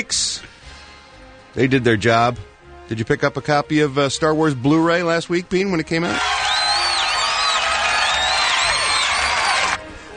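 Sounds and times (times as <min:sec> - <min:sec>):
speech: 0:00.0 - 0:00.6, 0:01.5 - 0:06.4
people cheering: 0:06.0 - 0:09.8.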